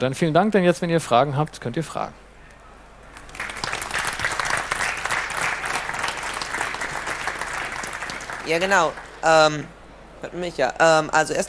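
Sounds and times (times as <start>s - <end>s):
speech: 0.0s - 2.2s, 8.5s - 11.4s
audience applause after a talk: 3.1s - 9.2s.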